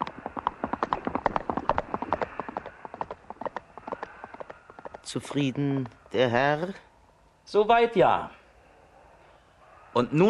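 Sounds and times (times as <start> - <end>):
hooves of several farm horses released from a paddock running off: 0.0 - 6.7
speech: 5.1 - 6.9, 7.5 - 8.4, 10.0 - 10.2.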